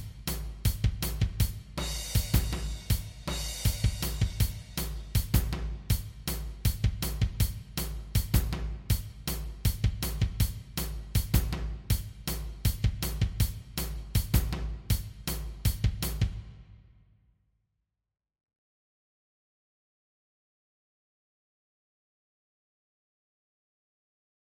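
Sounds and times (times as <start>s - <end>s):
drum kit: 0.0s - 16.8s.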